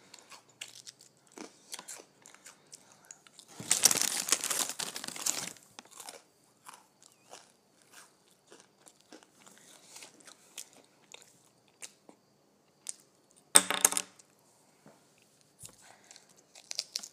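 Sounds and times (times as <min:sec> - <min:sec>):
person crunching on potato chips: 0:00.1 - 0:11.2, 0:16.0 - 0:17.1.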